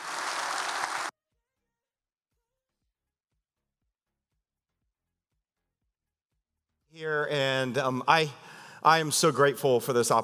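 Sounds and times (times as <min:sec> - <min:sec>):
church audience applauding to welcome a guest pastor from Ohio: 0:00.0 - 0:01.1
speech: 0:07.0 - 0:10.2.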